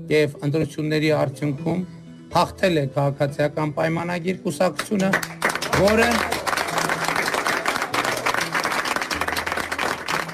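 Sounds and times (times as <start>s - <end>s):
speech: 0.0s - 6.4s
crowd applauding during a politician's speech at an election-time event: 4.8s - 10.3s.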